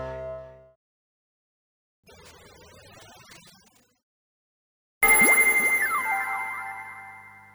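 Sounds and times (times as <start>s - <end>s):
Kaossilator synthesizer: 5.0s - 7.5s.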